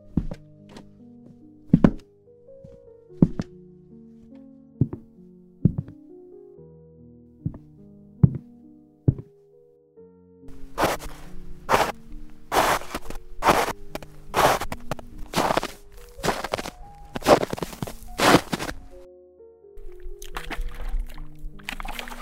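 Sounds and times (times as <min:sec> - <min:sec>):
human footsteps: 0:00.0 - 0:02.0, 0:02.6 - 0:03.5, 0:04.2 - 0:06.0, 0:07.5 - 0:08.5, 0:09.1 - 0:09.3, 0:10.5 - 0:19.0.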